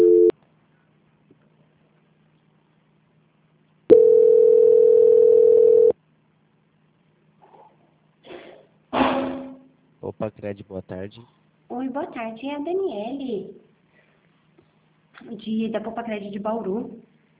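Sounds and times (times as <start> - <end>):
telephone line tones while a call is being transferred: 0.0 - 0.3, 3.9 - 6.0
speech: 10.2 - 13.6, 15.2 - 17.1.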